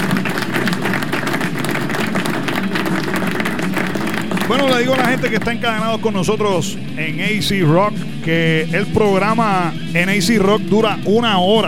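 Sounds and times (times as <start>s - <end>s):
applause on a rock and metal radio program: 0.0s - 5.6s
speech: 4.5s - 11.6s.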